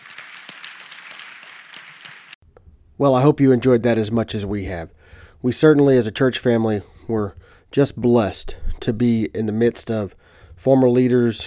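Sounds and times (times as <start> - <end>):
audience applause: 0.0 - 2.4
speech: 3.0 - 11.4.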